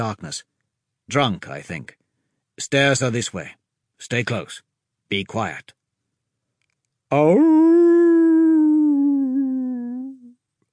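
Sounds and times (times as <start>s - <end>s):
speech: 0.0s - 0.5s, 1.1s - 2.0s, 2.6s - 5.8s, 7.1s - 7.9s
wolf howling loudly: 7.2s - 10.2s.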